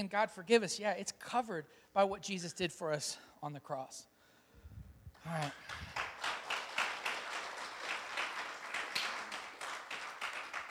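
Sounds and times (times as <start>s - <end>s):
speech: 0.0s - 4.1s, 5.2s - 5.9s
audience clapping: 5.3s - 10.6s.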